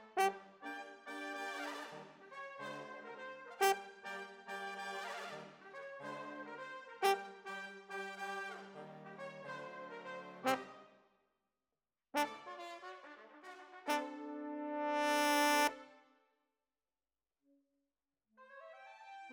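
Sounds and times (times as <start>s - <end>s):
horns: 0.2s - 10.9s, 12.2s - 16.0s.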